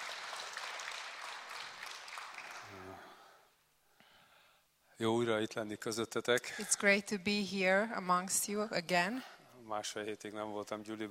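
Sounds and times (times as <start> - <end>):
audience applause: 0.0 - 3.0
speech: 5.0 - 11.0.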